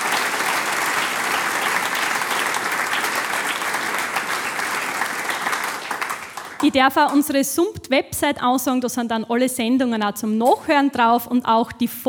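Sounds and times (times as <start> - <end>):
audience applause: 0.0 - 7.3
speech: 6.6 - 12.0.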